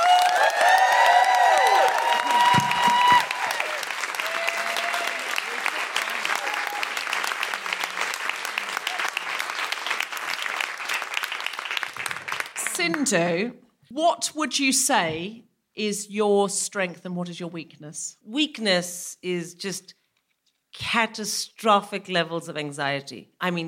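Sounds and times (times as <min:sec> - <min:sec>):
whoops and shouts: 0:00.0 - 0:05.6, 0:06.2 - 0:07.0
audience clapping to welcome a comedian guest: 0:00.0 - 0:13.3
speech: 0:13.1 - 0:20.0, 0:20.8 - 0:23.6.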